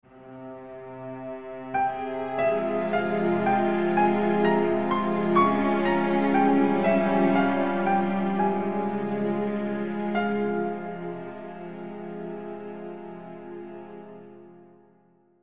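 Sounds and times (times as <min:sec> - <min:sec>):
sad music ending: 0:00.1 - 0:14.5.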